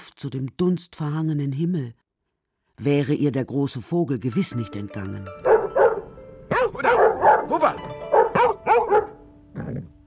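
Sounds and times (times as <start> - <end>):
speech: 0.2 - 2.0, 2.8 - 5.5
dogs barking at a stranger: 5.4 - 9.2.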